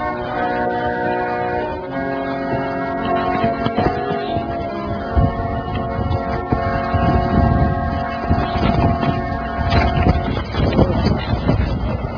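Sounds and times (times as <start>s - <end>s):
gusting wind roaring across the microphone: 0.2s - 12.1s
loose paper rustling and fluttering: 2.4s - 6.0s, 8.0s - 11.8s.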